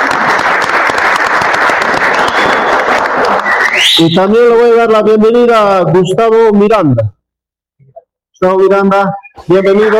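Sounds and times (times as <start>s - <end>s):
audience applause: 0.0s - 3.9s
speech: 4.0s - 7.2s, 8.4s - 9.9s.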